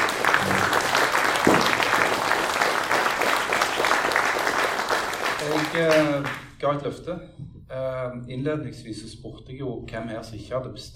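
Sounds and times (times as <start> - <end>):
audience applause: 0.0 - 6.4
speech: 5.8 - 10.9.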